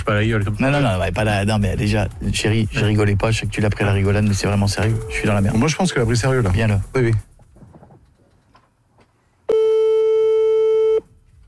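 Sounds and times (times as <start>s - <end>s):
speech: 0.0s - 7.3s
phone line tone after call cuts off: 9.5s - 11.0s.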